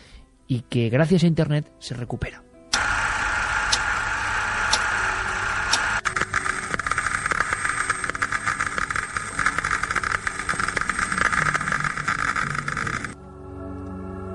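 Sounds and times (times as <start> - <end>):
speech: 0.5 - 2.5
radiation particles hitting camera film, crackling hiss with clicks: 2.7 - 13.2.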